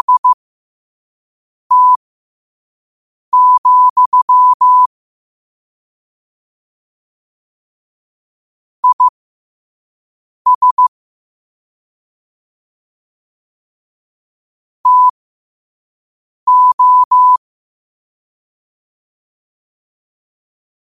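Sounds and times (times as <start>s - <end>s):
morse code at 5 wpm: 0.0s - 0.4s, 1.7s - 2.0s, 3.4s - 4.9s, 8.8s - 9.1s, 10.5s - 10.9s, 14.8s - 15.1s, 16.5s - 17.4s.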